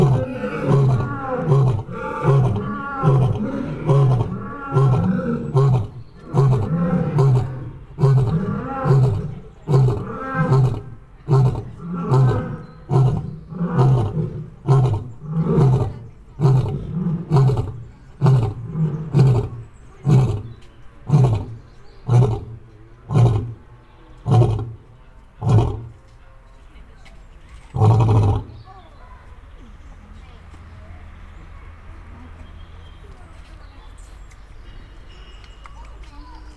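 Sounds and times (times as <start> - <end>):
male and female lions roaring: 0.0 - 26.0, 27.7 - 28.7.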